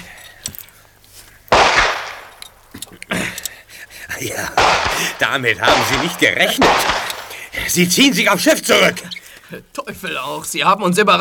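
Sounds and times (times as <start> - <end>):
gunfire on a beach: 1.5 - 2.4, 4.5 - 7.5
speech: 4.2 - 7.0, 7.6 - 11.2.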